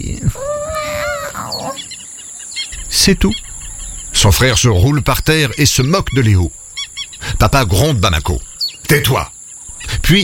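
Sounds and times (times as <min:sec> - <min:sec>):
voice imitating a tiny lion cub roar: 0:00.0 - 0:01.9
faint hiss: 0:00.0 - 0:10.2
speech: 0:03.0 - 0:03.5, 0:04.2 - 0:06.6, 0:07.2 - 0:09.3, 0:10.0 - 0:10.2.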